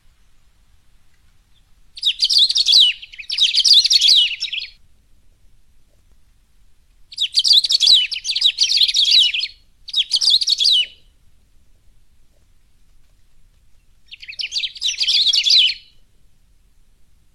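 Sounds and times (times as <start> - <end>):
Saffron-billed sparrow singing rapid tangled twittering phrases: 1.5 - 4.8, 7.1 - 11.1, 13.7 - 16.0.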